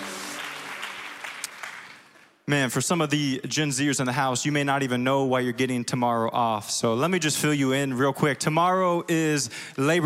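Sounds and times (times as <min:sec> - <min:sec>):
crowd clapping: 0:00.0 - 0:02.4
speech: 0:02.5 - 0:10.0.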